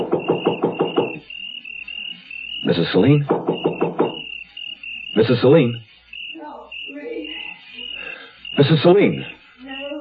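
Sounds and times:
knocking on a door: 0.0 - 1.2, 3.2 - 4.3
speech: 2.6 - 3.4, 5.2 - 5.9, 8.6 - 9.3.

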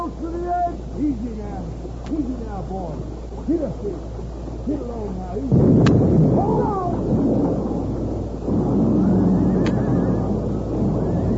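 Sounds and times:
rockslide: 0.0 - 11.3
speech: 2.7 - 6.2
ear-splitting explosion: 5.5 - 11.3.

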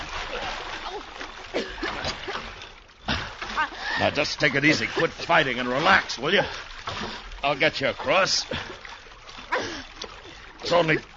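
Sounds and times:
bodies splashing into ditch water: 0.0 - 11.1
speech: 4.0 - 8.9, 10.7 - 11.1.

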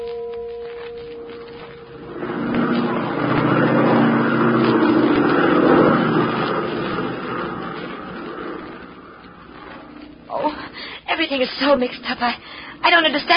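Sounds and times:
airplane engine: 0.8 - 10.2
speech: 11.6 - 13.3.

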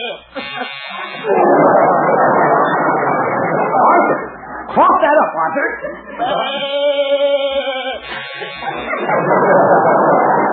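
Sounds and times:
door buzzer sounding: 0.2 - 1.3, 7.9 - 9.1
laughter: 0.3 - 4.7, 5.4 - 10.5.

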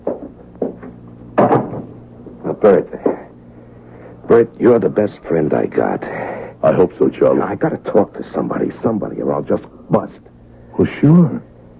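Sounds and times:
low steady hum: 0.0 - 11.7
wooden door being shut: 1.4 - 2.0
speech: 2.6 - 3.1, 4.4 - 11.5.

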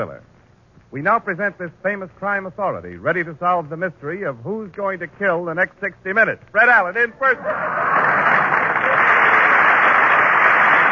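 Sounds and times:
speech: 0.9 - 8.3
audience applause: 7.5 - 10.9.

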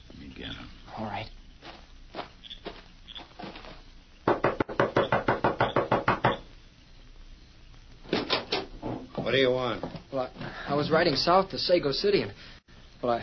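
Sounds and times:
speech: 0.4 - 1.4, 9.3 - 13.2
knocking on a wooden door: 4.3 - 6.4.

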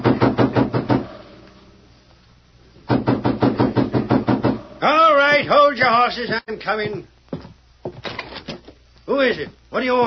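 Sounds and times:
sharp knocking on a door: 0.0 - 1.1, 2.9 - 4.6
speech: 4.8 - 7.2, 9.1 - 10.0
footsteps across the veranda: 6.3 - 8.8.

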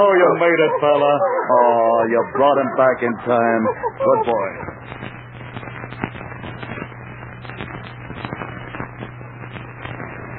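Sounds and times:
laughter: 0.0 - 4.8
speech: 0.0 - 5.2
crackling driftwood fire: 4.3 - 10.3.

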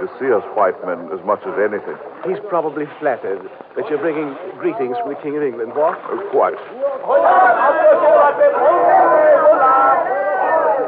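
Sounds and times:
speech: 0.0 - 9.6
crowd cheering and calling out: 6.6 - 10.8.

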